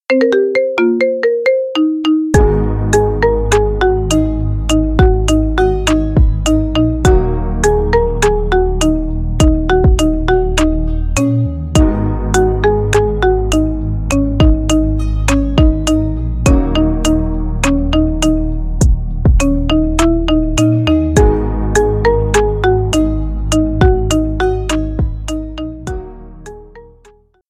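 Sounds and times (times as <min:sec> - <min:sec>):
marimba remix: 0:00.0 - 0:27.2.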